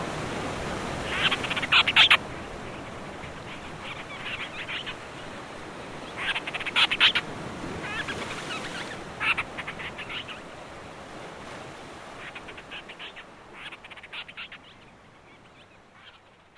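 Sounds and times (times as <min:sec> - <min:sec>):
Painho bird calling on Graciosa in Madeira and the Azores: 0:01.0 - 0:10.7, 0:12.2 - 0:16.5.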